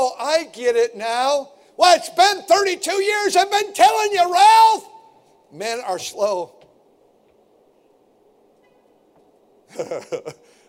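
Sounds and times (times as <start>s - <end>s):
speech: 0.2s - 4.9s, 5.5s - 6.6s, 9.7s - 10.5s
horn honking: 8.6s - 9.0s
laughter: 9.7s - 10.4s.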